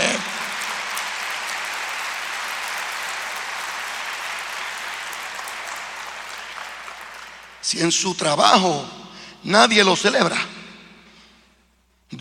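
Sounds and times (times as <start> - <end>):
loud audience applause: 0.0 - 7.7
speech: 7.6 - 10.5.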